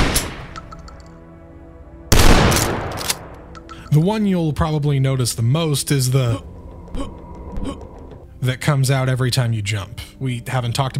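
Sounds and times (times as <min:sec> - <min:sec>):
two shotguns firing in a video game: 0:00.0 - 0:00.6, 0:02.1 - 0:03.4
speech: 0:03.9 - 0:07.2, 0:08.4 - 0:10.9.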